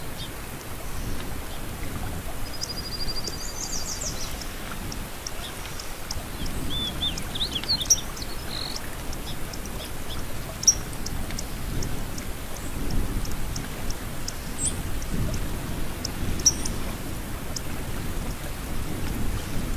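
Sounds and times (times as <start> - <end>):
babbling flowing water: 0.0 - 19.7
small birds chirping faintly: 2.4 - 16.8.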